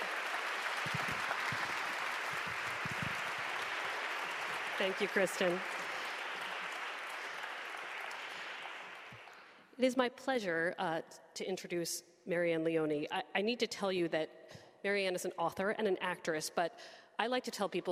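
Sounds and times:
audience round of applause: 0:00.0 - 0:09.5
speech: 0:04.8 - 0:05.8, 0:09.8 - 0:17.9.

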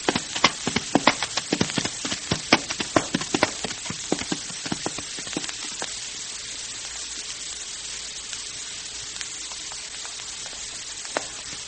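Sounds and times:
horse hooves clip-clopping on trail: 0:00.0 - 0:05.9
steady hiss: 0:00.0 - 0:11.6.

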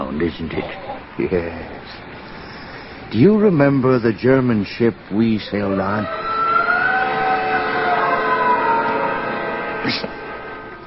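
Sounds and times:
speech: 0:00.1 - 0:02.2, 0:03.1 - 0:06.2, 0:09.8 - 0:10.1
someone screaming in the distance: 0:05.4 - 0:09.1.

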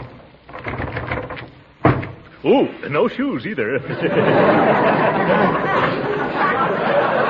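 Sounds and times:
stuck door rattled and tugged: 0:00.0 - 0:02.4
speech: 0:02.4 - 0:06.7
laughter: 0:03.5 - 0:07.2.

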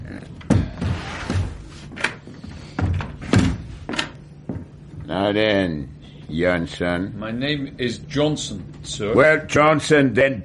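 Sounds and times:
doors being shut: 0:00.4 - 0:04.2
speech: 0:05.1 - 0:10.4.

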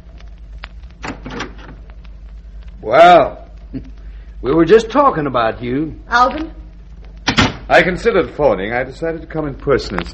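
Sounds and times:
steady low hum: 0:00.0 - 0:10.1
door being opened: 0:01.0 - 0:01.8, 0:07.2 - 0:07.7
speech: 0:02.8 - 0:06.6, 0:07.7 - 0:10.1.

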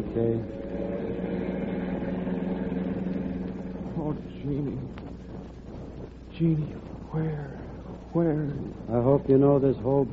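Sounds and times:
speech: 0:00.0 - 0:00.6, 0:04.1 - 0:05.1, 0:06.4 - 0:10.1
car engine droning while driving: 0:00.0 - 0:05.6.

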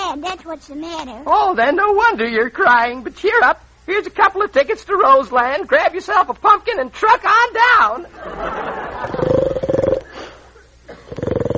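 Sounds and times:
speech: 0:00.1 - 0:09.1
laughter: 0:08.0 - 0:09.4
snoring: 0:09.0 - 0:10.2, 0:11.1 - 0:11.5.

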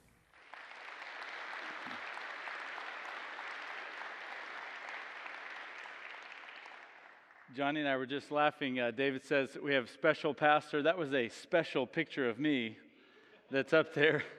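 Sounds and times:
congregation at First Methodist Mansfield clapping: 0:00.0 - 0:08.5
speech: 0:07.5 - 0:12.8, 0:13.5 - 0:14.3.

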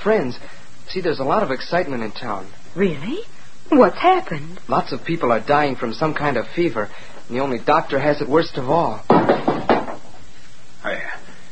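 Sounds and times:
speech: 0:00.0 - 0:09.2
basin knocked to the floor: 0:09.1 - 0:10.1.

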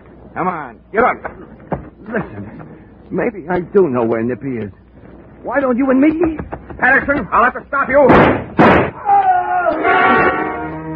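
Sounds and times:
speech: 0:00.4 - 0:04.8, 0:05.4 - 0:08.8
gunshot fired in the darkness: 0:08.1 - 0:09.0
sustained tones: 0:09.7 - 0:10.9.

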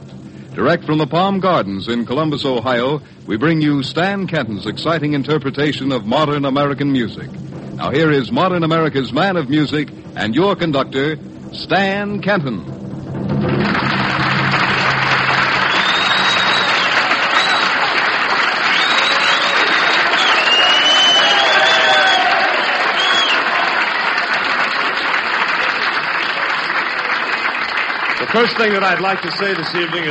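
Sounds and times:
speech: 0:00.6 - 0:12.8, 0:28.4 - 0:30.1
large audience applause: 0:13.4 - 0:30.1
whistles and cheers: 0:13.8 - 0:30.1.

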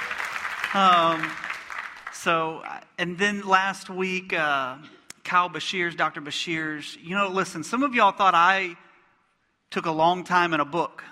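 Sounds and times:
audience clapping: 0:00.0 - 0:02.8
speech: 0:00.7 - 0:01.5, 0:02.2 - 0:08.9, 0:09.7 - 0:11.0.

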